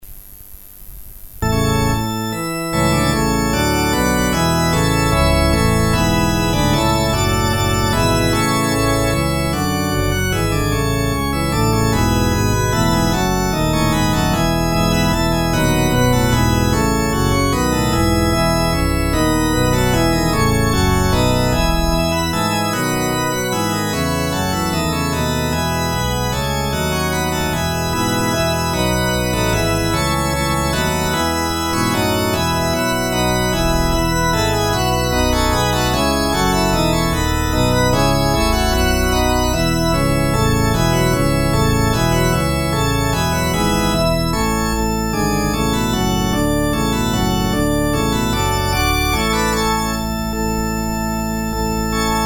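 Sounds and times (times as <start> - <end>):
organ interlude: 1.4 - 52.2.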